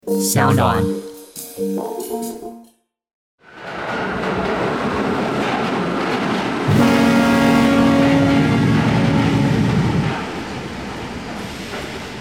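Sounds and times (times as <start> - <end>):
speech: 0.2 - 1.0, 1.6 - 2.6
train rumbling into a station platform: 3.4 - 12.1.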